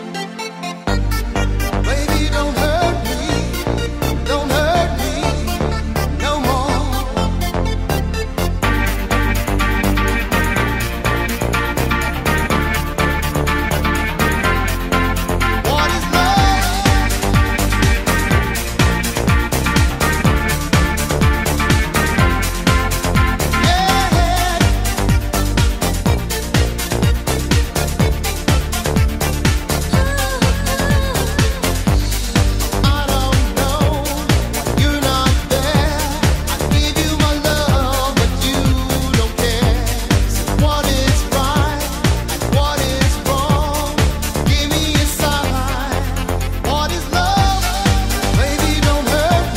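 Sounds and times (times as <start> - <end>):
shuffle dance music: 0.9 - 49.5.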